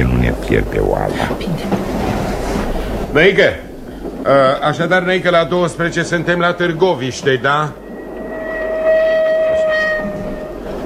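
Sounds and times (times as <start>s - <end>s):
train running on rails: 0.0s - 10.8s
speech: 0.5s - 1.9s, 3.1s - 3.6s, 4.2s - 7.8s.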